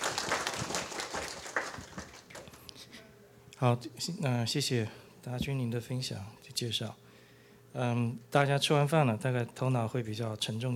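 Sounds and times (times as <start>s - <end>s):
audience applause welcoming a speaker: 0.0s - 2.6s
speech: 3.6s - 7.0s, 7.7s - 10.7s.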